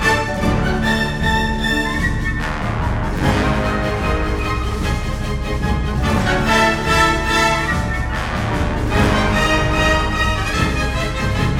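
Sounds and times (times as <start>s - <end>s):
clarinet solo: 0.0s - 11.4s.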